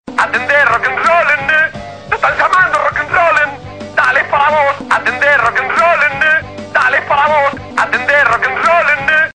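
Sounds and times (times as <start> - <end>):
rock and roll music: 0.1 - 9.3.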